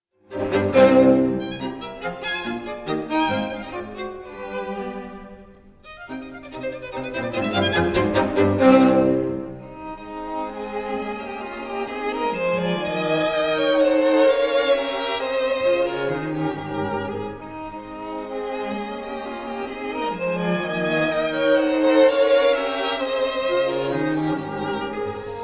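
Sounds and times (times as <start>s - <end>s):
clarinet concerto third movement: 0.3s - 25.4s.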